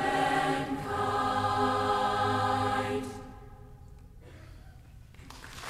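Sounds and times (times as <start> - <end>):
mixed choir: 0.0 - 3.8.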